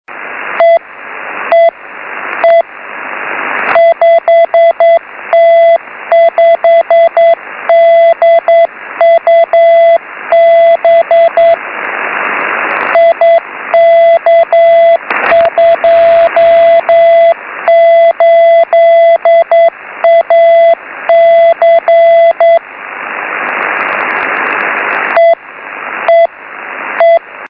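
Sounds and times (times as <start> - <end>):
six-metre band radio beacon signal: 0.6 - 0.8, 1.5 - 1.8, 2.4 - 2.7, 3.6 - 11.6, 12.4 - 22.6, 23.3 - 25.4, 26.0 - 26.3, 27.0 - 27.3.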